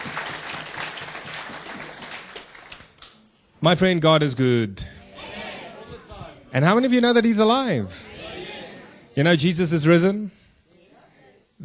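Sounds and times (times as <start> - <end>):
church congregation applauding: 0.0 - 3.1
speech: 3.6 - 4.9, 6.5 - 8.0, 9.2 - 10.4.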